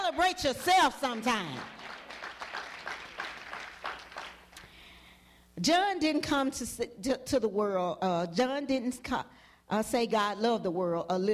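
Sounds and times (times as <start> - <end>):
crowd clapping: 0.0 - 4.7
speech: 0.1 - 1.8, 5.6 - 11.3.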